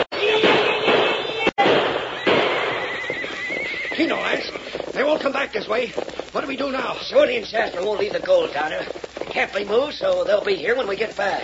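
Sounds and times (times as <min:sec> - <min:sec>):
gunshots fired into the air: 0:00.0 - 0:05.4
speech: 0:05.1 - 0:11.4.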